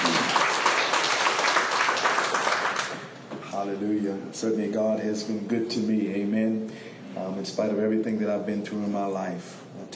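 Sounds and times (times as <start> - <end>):
audience clapping in praise: 0.0 - 3.2
speech: 3.6 - 9.9.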